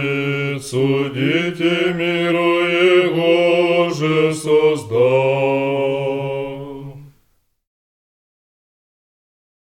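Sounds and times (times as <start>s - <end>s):
resurrectional chant tone: 0.0s - 7.2s.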